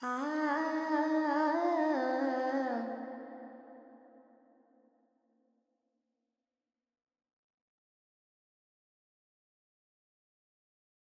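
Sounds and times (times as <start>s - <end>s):
woman singing Carnatic pentatonic alap in G: 0.0s - 3.1s.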